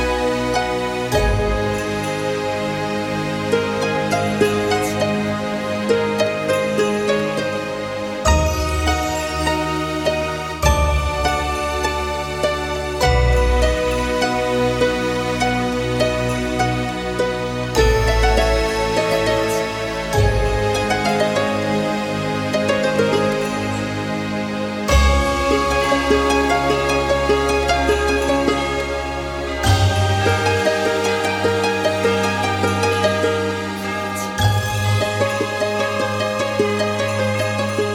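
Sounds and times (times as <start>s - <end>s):
harp: 0.0s - 37.9s
orchestra playing: 0.0s - 37.9s.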